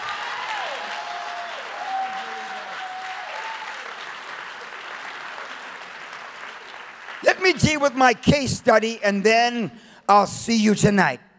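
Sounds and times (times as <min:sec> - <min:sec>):
crowd applause: 0:00.0 - 0:08.2
speech: 0:07.4 - 0:11.2.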